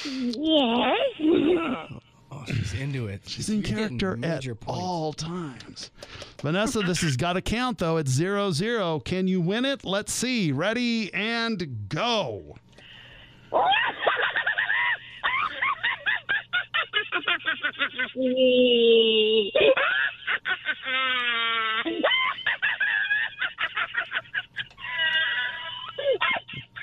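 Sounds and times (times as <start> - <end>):
speech: 0.0 - 12.6, 13.5 - 14.0, 17.7 - 22.3
laughter: 6.5 - 7.2, 13.6 - 26.8
person imitating a Pomeranian barking: 18.2 - 19.7.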